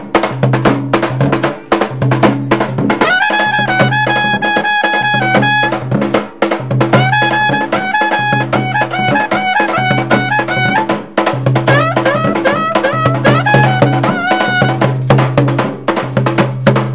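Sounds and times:
drum played in India: 0.0s - 16.9s
bugle played in India: 3.0s - 5.7s, 7.0s - 10.9s, 11.7s - 14.8s.

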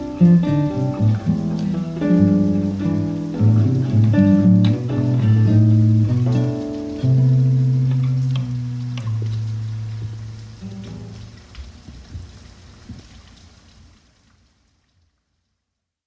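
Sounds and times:
guitar: 0.0s - 11.5s
rain: 0.0s - 16.0s.

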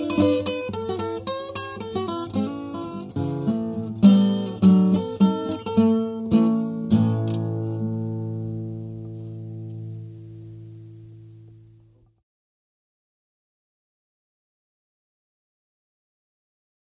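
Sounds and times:
fast blues improvisation in A: 0.0s - 12.0s.

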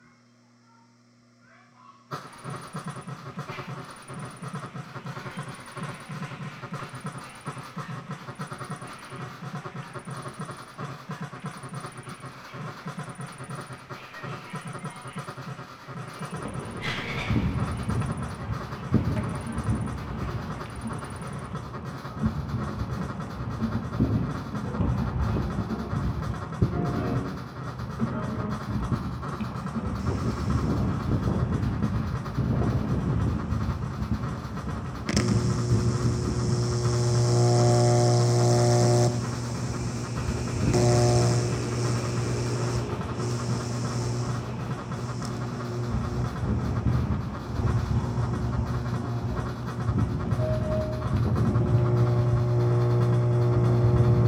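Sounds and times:
field recordings: 0.1s - 54.2s
noise from two amplifiers: 2.1s - 54.2s
guitar: 14.1s - 54.2s.

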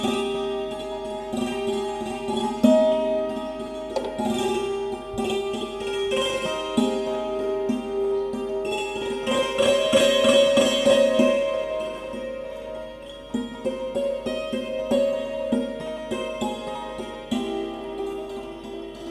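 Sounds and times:
santoor playing religious music at Assi Ghat Varanasi: 0.0s - 19.0s.

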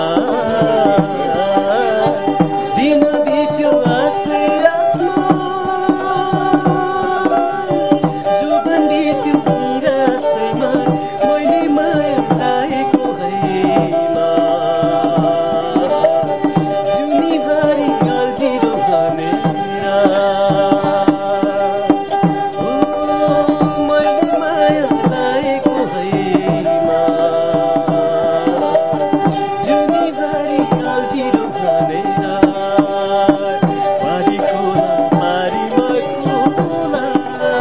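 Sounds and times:
sirangi drum duo in India: 0.0s - 37.6s.

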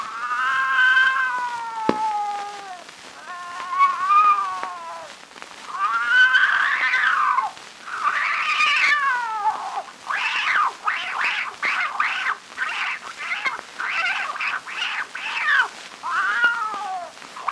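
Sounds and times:
bird calling: 0.0s - 4.9s, 5.7s - 17.5s
cat meowing: 0.0s - 17.5s
rooster crowing: 0.2s - 4.8s.

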